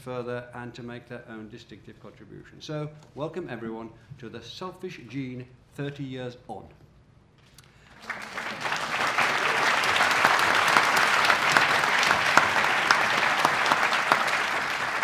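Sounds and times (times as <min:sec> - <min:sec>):
speech: 0:00.0 - 0:06.8
audience applause: 0:07.9 - 0:15.0.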